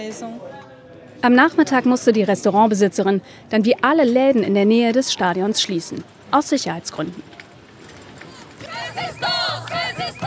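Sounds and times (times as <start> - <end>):
speech: 0.0 - 7.4
crowd of demonstrators chanting: 8.3 - 10.2.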